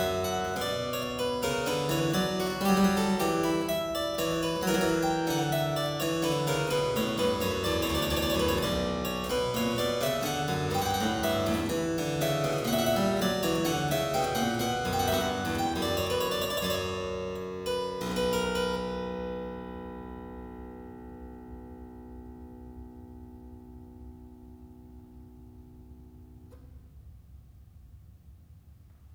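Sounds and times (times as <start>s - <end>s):
keyboard piece in C minor: 0.0s - 18.9s.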